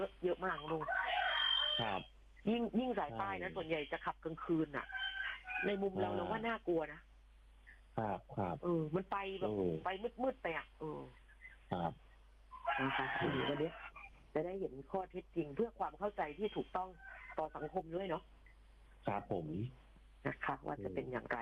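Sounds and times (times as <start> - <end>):
speech: 0.0 - 1.1, 1.8 - 5.0, 5.6 - 7.1, 8.0 - 12.0, 12.7 - 18.3, 19.0 - 21.3
rooster crowing: 0.7 - 2.0, 4.8 - 6.4, 12.5 - 14.1.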